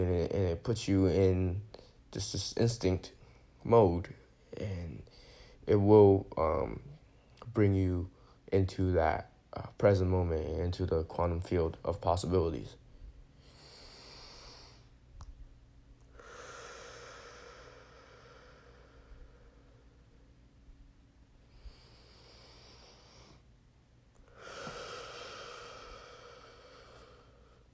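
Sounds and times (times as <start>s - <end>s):
speech: 0.0s - 6.9s, 7.5s - 12.8s
soft breathing of a speaker pausing mid-talk: 4.3s - 5.7s, 12.8s - 15.1s, 16.0s - 20.4s, 21.4s - 23.5s, 24.2s - 27.7s.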